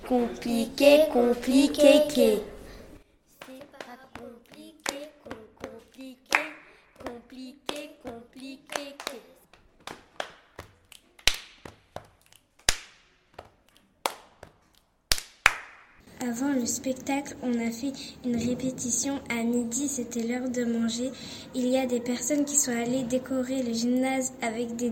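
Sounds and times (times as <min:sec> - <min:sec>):
children speaking in rhythm: 0:00.0 - 0:09.5, 0:16.1 - 0:24.8
speech: 0:00.1 - 0:02.5, 0:16.7 - 0:24.8
hand claps and finger snaps in a children's body-percussion chant: 0:03.4 - 0:16.0.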